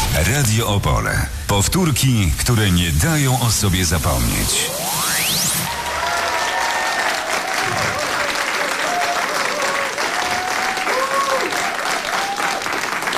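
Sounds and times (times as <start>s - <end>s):
speech: 0.2s - 4.8s
studio audience applause: 5.7s - 13.1s.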